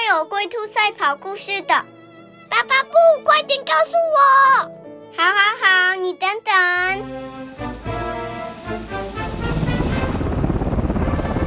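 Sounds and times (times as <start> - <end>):
speech: 0.2 - 7.7
helicopter rotor chopping in flight: 6.8 - 11.4
tonal musical sound: 7.1 - 11.4.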